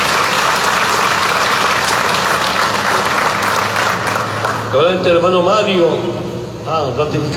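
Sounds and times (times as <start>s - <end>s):
audience applauding members recognised at a meeting: 0.0s - 4.8s
speech: 4.7s - 7.3s.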